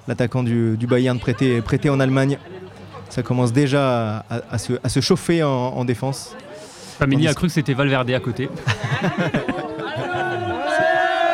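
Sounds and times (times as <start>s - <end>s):
speech: 0.0s - 9.6s
stadium crowd murmuring at a France national team football match: 0.0s - 11.3s
laughter: 1.1s - 3.1s, 8.4s - 11.3s.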